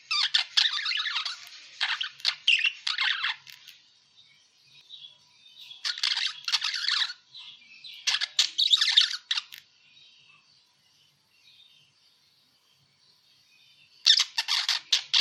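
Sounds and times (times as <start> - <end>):
parakeet warbling chatter of buzzy chirps and squeaks: 0.0 - 3.5, 5.8 - 7.2, 8.0 - 9.6, 14.0 - 15.1.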